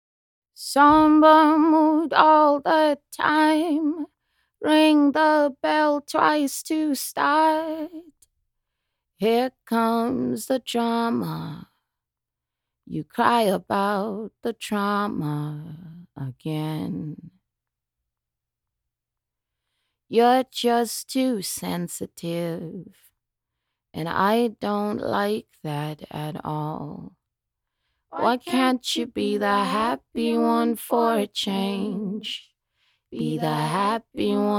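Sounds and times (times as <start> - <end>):
a cappella jazz blues singing in E-flat minor at 120 bpm: 0.6 - 8.2, 9.2 - 11.6, 12.9 - 17.4, 20.1 - 23.0, 24.0 - 27.1, 28.1 - 32.5, 33.1 - 34.5.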